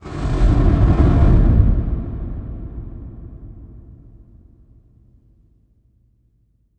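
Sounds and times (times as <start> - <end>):
cinematic flame impact: 0.0 - 4.9.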